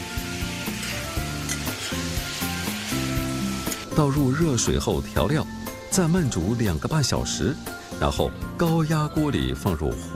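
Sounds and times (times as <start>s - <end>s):
beef stir-frying in a wok after frying scallion, ginger and spices: 0.0s - 10.1s
speech: 4.0s - 10.1s.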